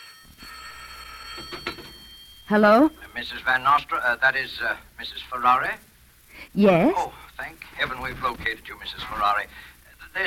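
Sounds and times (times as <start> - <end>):
telephone bell ringing: 0.0 - 4.4
speech: 2.5 - 5.9, 6.5 - 10.2.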